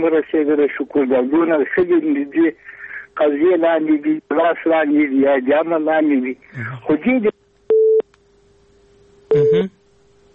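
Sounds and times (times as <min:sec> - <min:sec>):
speech: 0:00.0 - 0:07.4, 0:09.3 - 0:09.8
faint continuous hum: 0:00.0 - 0:10.3
telephone busy signal after a dropped call: 0:07.7 - 0:08.0, 0:09.3 - 0:09.7.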